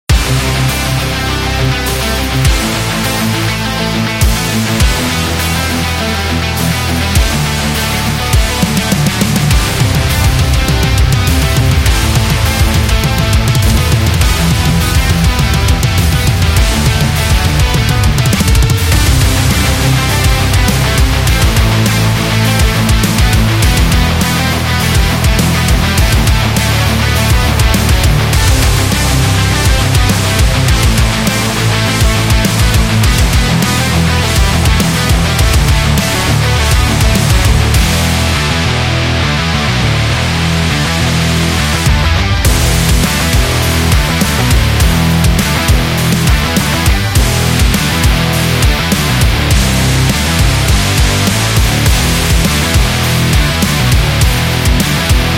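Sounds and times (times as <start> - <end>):
heavy metal music: 0.0 - 55.3.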